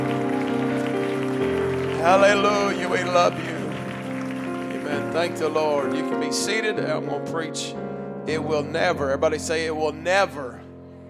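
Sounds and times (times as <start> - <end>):
audience clapping hands: 0.0 - 6.7
speech: 2.0 - 3.6, 5.1 - 10.6.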